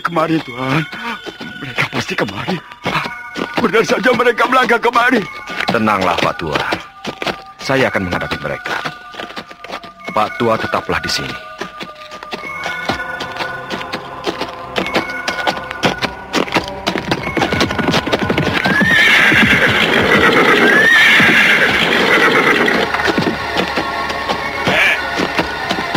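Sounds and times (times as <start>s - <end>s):
speech: 0.0s - 3.0s, 3.6s - 6.9s, 7.7s - 8.9s, 10.2s - 11.5s
clatter of hoofbeats of a ridden horse arriving at an inn: 0.0s - 25.9s
ridden horse whinnying on arrival at an inn: 18.1s - 23.9s, 24.5s - 25.1s.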